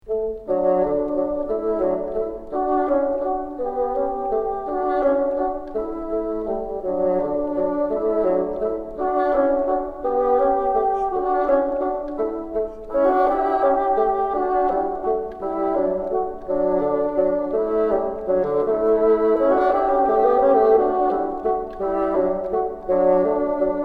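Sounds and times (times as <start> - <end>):
bassoon: 0.0 - 23.8.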